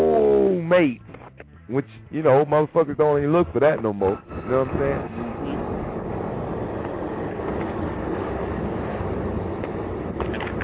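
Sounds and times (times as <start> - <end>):
speech: 0.7 - 1.1, 1.7 - 5.4
train passing: 2.6 - 10.6.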